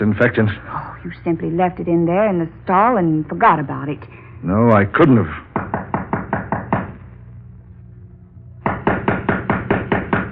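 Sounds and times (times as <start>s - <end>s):
speech: 0.0s - 5.4s
loud rapid knocking on a door: 5.5s - 7.0s, 8.6s - 10.2s.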